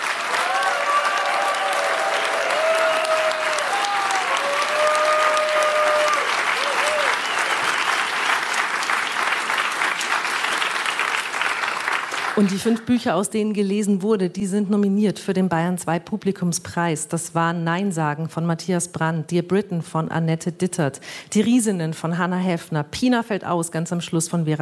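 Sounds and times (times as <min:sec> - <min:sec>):
audience applause: 0:00.0 - 0:12.9
speech: 0:12.4 - 0:24.5.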